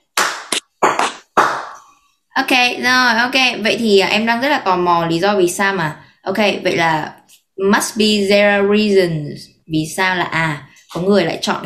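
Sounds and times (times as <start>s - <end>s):
hand claps marking an edit: 0.0s - 1.8s
speech: 2.4s - 11.6s.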